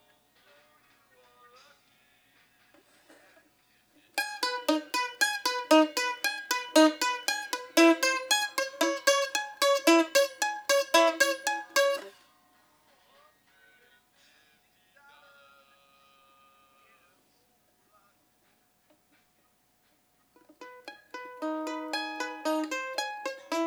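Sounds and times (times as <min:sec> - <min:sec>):
mandolin: 0:04.1 - 0:12.2, 0:20.4 - 0:23.6.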